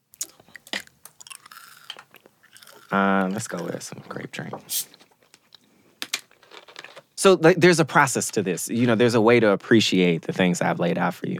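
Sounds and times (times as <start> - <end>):
chewing a Skittles candy: 0.2 - 3.8
speech: 2.9 - 5.0, 7.2 - 11.3.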